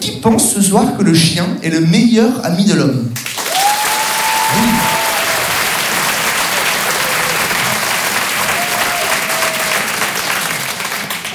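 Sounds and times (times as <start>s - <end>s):
speech: 0.2s - 3.3s, 4.5s - 5.0s
large audience applause: 3.2s - 11.3s
faint murmur of voices: 4.4s - 5.5s.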